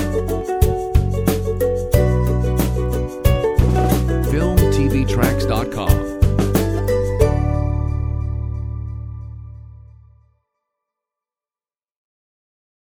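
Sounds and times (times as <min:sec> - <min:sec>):
ukulele: 0:00.0 - 0:07.9.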